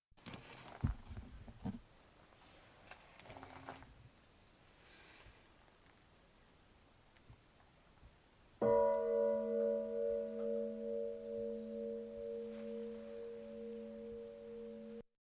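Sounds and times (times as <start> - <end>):
bell ringing: 8.6 - 15.0.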